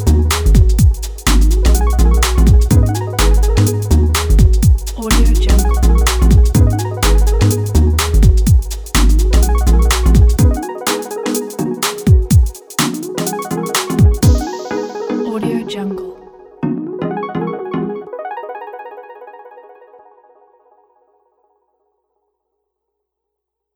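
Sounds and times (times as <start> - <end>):
commercial break background beat: 0.0 - 15.8.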